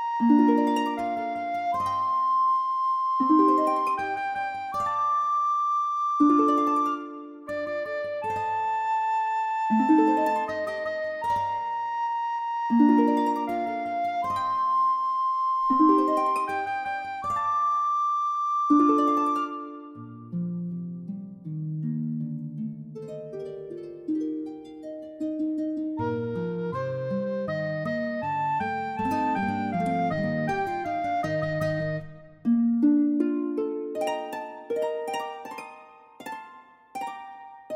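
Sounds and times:
alto recorder playing a bransle: 0.0s - 20.1s, 26.0s - 32.4s
harp playing a bransle: 0.0s - 37.7s
guitar playing a bransle: 26.0s - 32.3s.

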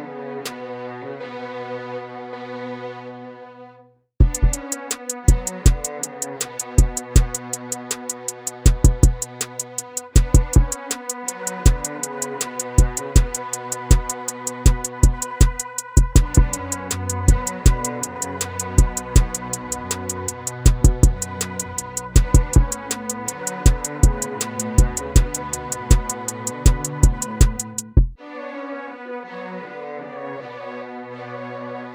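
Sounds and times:
cello beat: 4.2s - 28.2s.

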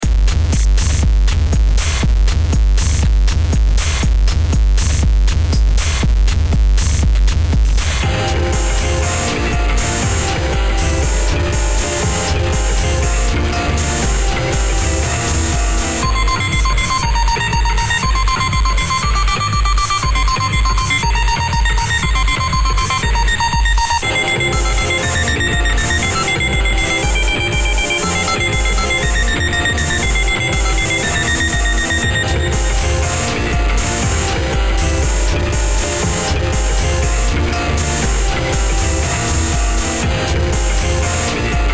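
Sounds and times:
bass: 0.0s - 41.7s.

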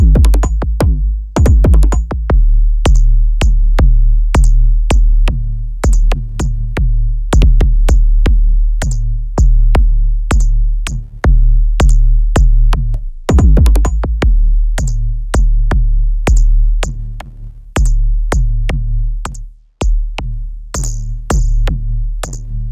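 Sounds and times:
kick drum: 0.0s - 17.0s, 17.8s - 22.4s.

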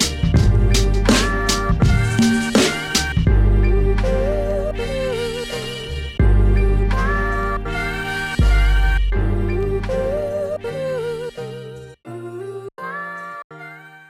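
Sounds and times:
boom bap beat: 0.0s - 10.2s.

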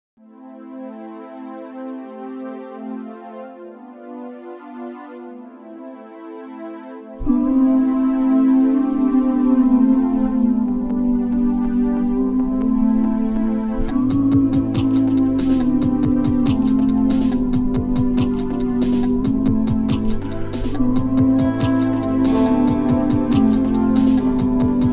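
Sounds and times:
Moog-style synth oohs: 7.2s - 24.9s
beats: 13.9s - 24.9s.

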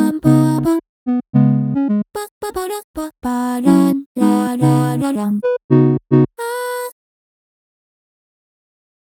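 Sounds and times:
person singing: 0.0s - 0.8s, 2.2s - 5.6s, 6.4s - 7.0s
synthesizer: 0.0s - 2.1s, 3.7s - 6.3s.

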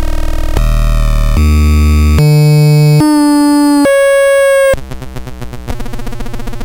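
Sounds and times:
circuit bent Gameboy noise: 0.1s - 4.8s
circuit bent Gameboy triangle wave tone: 1.4s - 4.8s.

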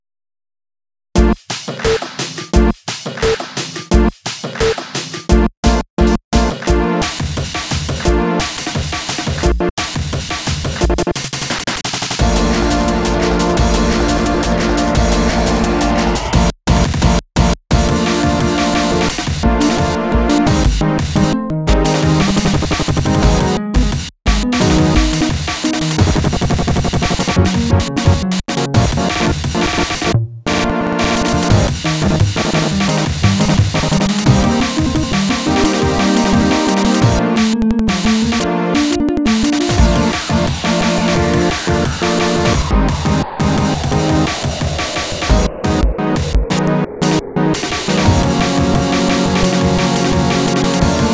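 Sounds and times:
test beats: 1.2s - 51.1s.

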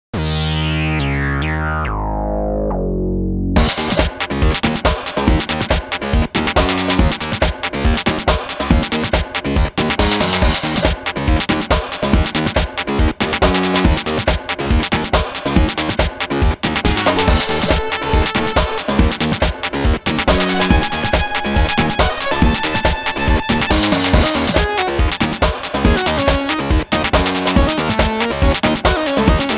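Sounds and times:
synth funk music: 0.1s - 29.5s.

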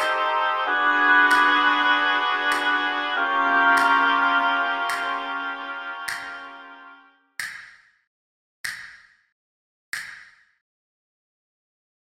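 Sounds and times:
oboes playing: 0.0s - 7.0s.

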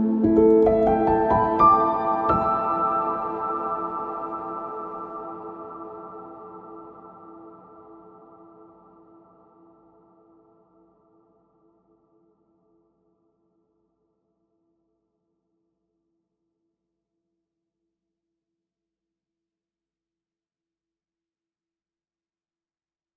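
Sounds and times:
melody: 0.0s - 5.5s.

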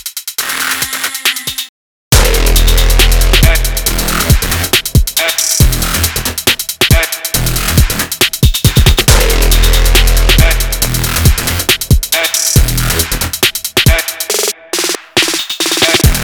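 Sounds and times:
electronic jungle music made in Renoise: 0.5s - 16.2s.

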